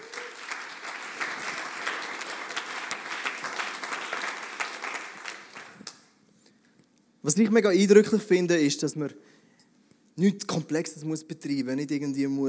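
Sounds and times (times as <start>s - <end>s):
crowd applauding: 0.0s - 6.1s
speech: 7.2s - 9.3s, 10.2s - 12.4s.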